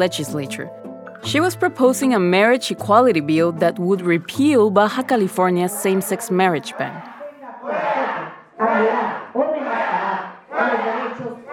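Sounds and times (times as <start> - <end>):
speech: 0.0 - 7.2
crowd loudly chanting in legislature chamber: 5.9 - 11.5.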